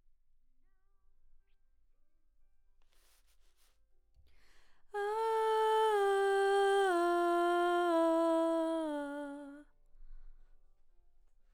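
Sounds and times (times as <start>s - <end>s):
background vocals: 4.9s - 9.6s.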